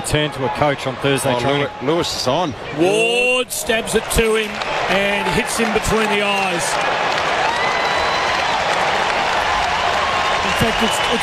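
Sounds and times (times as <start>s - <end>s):
speech: 0.1s - 7.3s, 10.6s - 11.2s
large stadium crowd cheering and applauding: 3.4s - 11.2s.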